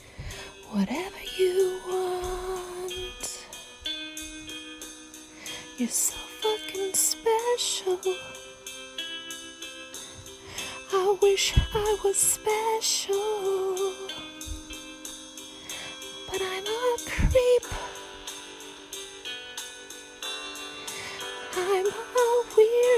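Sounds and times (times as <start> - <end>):
person singing: 0.6 - 3.6, 5.8 - 8.5, 10.9 - 14.8, 16.3 - 18.1, 21.5 - 22.9.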